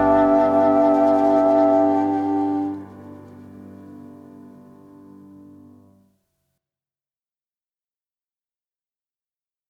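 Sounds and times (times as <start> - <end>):
waltz music: 0.0 - 3.6.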